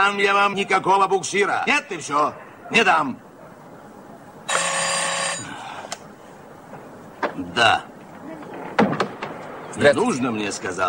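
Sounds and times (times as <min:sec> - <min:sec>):
speech: 0:00.0 - 0:03.2, 0:07.6 - 0:07.9, 0:09.8 - 0:10.8
telephone bell ringing: 0:04.5 - 0:05.5.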